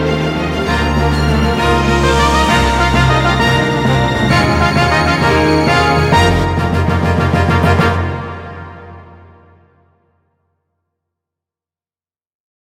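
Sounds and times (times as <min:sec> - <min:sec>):
opening background music: 0:00.0 - 0:10.1.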